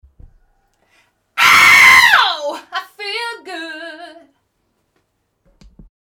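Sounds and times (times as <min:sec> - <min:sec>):
person screaming: 0:01.4 - 0:02.7.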